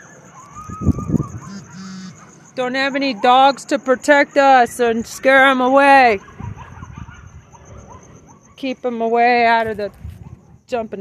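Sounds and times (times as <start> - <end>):
coyotes yipping: 0.0 - 10.7
thin high wavering tone: 0.3 - 2.9
speech: 2.6 - 6.3, 8.6 - 10.0, 10.7 - 10.9.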